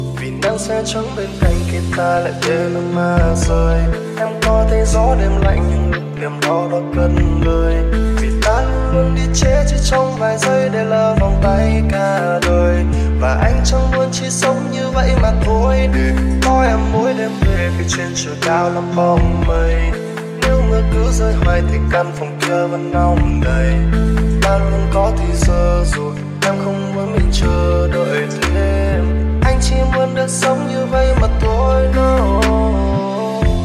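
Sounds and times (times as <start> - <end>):
lofi music: 0.0 - 33.6.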